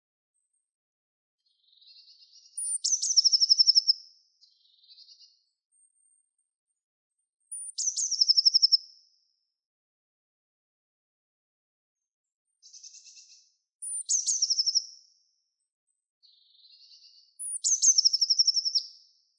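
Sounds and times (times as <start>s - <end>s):
bird giving high thin chirps and descending trill: 1.6s - 5.4s, 7.5s - 8.9s, 12.6s - 15.0s, 16.3s - 19.0s.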